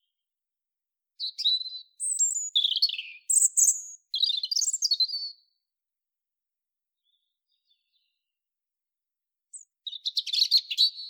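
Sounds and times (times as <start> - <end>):
European robin Erithacus rubecula singing: 1.2 - 5.5, 9.5 - 11.0.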